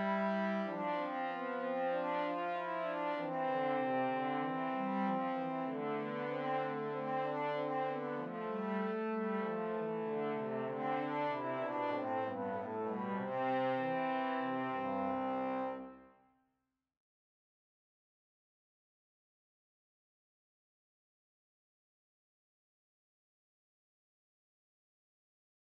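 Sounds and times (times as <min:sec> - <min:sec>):
polyphonic trombone: 0:00.0 - 0:16.1.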